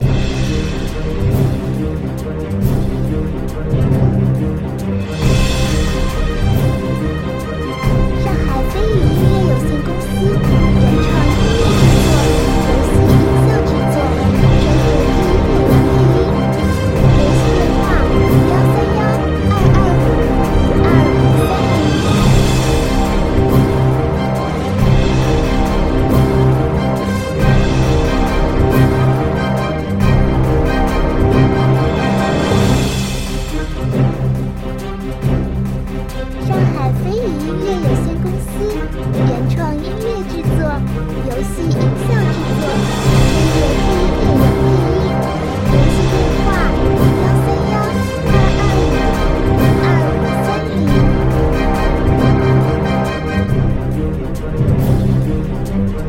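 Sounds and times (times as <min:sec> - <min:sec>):
tense intense oppressive music: 0:00.0 - 0:56.0.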